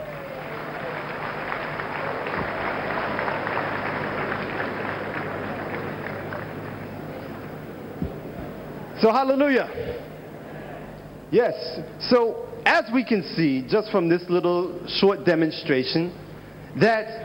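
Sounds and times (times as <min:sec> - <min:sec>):
crowd clapping: 0:00.0 - 0:08.7
speech: 0:09.0 - 0:10.1, 0:11.3 - 0:17.2.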